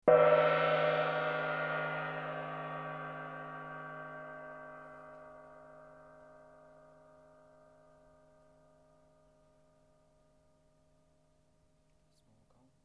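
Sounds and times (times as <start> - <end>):
gong: 0.0 - 10.8.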